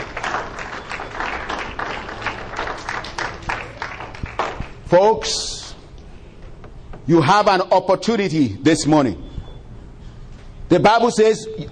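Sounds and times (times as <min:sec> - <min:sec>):
audience clapping hands: 0:00.0 - 0:04.9
speech: 0:04.9 - 0:05.5, 0:07.1 - 0:09.2, 0:10.7 - 0:11.7.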